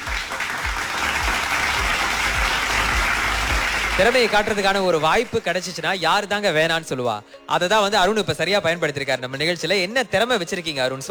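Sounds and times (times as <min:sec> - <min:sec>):
audience applause welcoming a performer on stage: 0:00.0 - 0:05.6
speech: 0:04.0 - 0:11.0.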